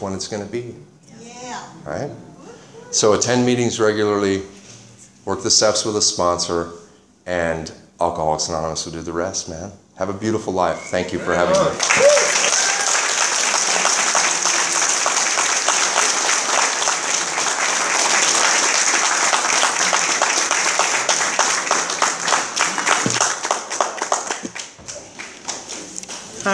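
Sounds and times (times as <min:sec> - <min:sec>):
speech: 0:00.0 - 0:01.0, 0:01.6 - 0:02.3, 0:02.9 - 0:04.6, 0:05.2 - 0:12.2
audience applause: 0:11.4 - 0:26.4.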